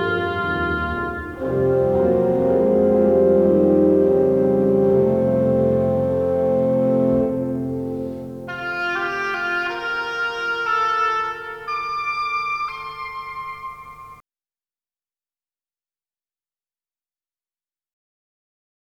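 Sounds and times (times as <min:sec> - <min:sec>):
oboe playing variations: 0:00.0 - 0:14.2.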